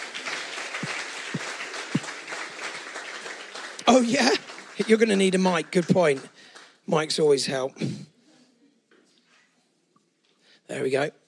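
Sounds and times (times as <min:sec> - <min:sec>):
audience applause: 0:00.0 - 0:06.8
speech: 0:03.9 - 0:08.0, 0:10.7 - 0:11.2.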